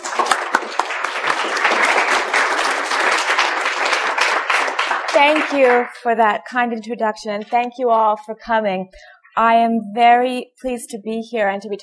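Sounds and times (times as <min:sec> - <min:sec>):
audience applause for a speaker at a lecture: 0:00.0 - 0:06.0
speech: 0:05.2 - 0:11.8.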